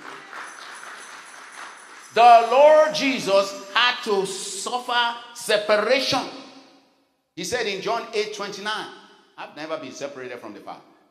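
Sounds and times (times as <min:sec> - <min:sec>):
audience hand clapping: 0:00.0 - 0:03.2
speech: 0:02.2 - 0:06.4, 0:07.4 - 0:10.9.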